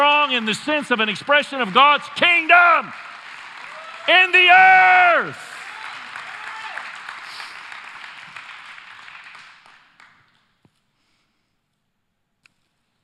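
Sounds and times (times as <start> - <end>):
speech: 0.0 - 3.1, 4.0 - 5.5
audience applause: 0.0 - 10.4.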